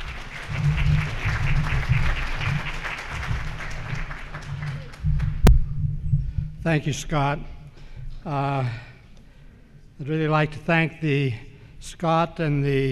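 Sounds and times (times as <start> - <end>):
conference audience applause: 0.0 - 5.5
low hum: 0.0 - 10.1
speech: 6.6 - 7.6, 8.2 - 8.9, 10.0 - 12.9.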